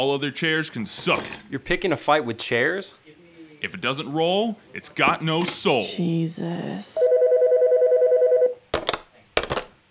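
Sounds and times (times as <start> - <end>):
speech: 0.0 - 3.0, 3.6 - 7.1
pulsing telephone tone: 7.0 - 8.6
telephone call being hung up with clattering clunks: 8.8 - 9.8.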